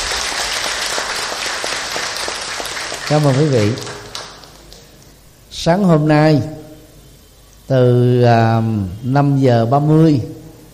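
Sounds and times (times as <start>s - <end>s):
loud round of applause: 0.0s - 5.0s
speech: 3.1s - 3.9s, 5.6s - 6.6s, 7.7s - 10.4s.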